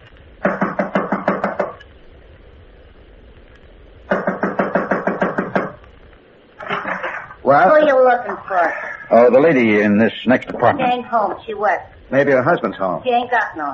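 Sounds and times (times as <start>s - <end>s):
knocking on an apartment door: 0.4s - 1.8s, 4.1s - 5.8s
speech: 7.5s - 13.7s.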